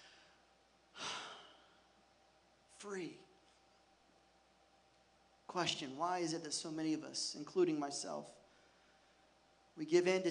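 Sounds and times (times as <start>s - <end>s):
slow deep breath: 0.0s - 1.9s, 8.5s - 9.3s
speech: 2.8s - 3.3s, 5.5s - 8.4s, 9.8s - 10.2s.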